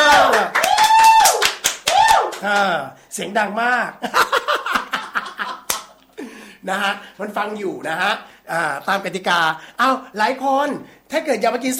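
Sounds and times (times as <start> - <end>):
people clapping hands: 0.0 - 2.8, 5.6 - 6.0
speech: 2.4 - 4.4, 6.6 - 11.7
laughter: 4.0 - 6.0.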